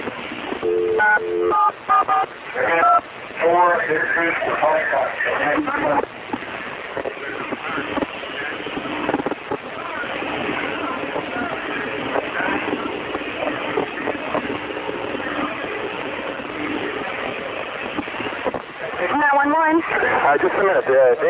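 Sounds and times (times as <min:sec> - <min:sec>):
crackly phone line noise: 0:00.0 - 0:21.2
telephone keypad tones dialing 911: 0:00.6 - 0:02.2
speech: 0:01.2 - 0:06.2.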